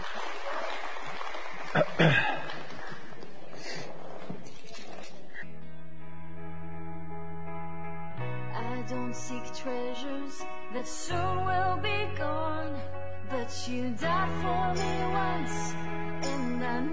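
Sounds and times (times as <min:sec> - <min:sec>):
crowd clapping and cheering: 0:00.0 - 0:04.3
speech: 0:01.7 - 0:02.3
steady sustained keyboard chords: 0:05.5 - 0:16.9.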